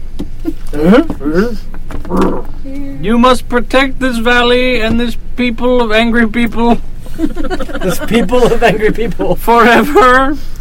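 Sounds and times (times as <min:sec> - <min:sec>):
voice imitating a lion's roar: 0:00.6 - 0:02.6
speech: 0:00.8 - 0:10.5
laughter: 0:07.0 - 0:10.4.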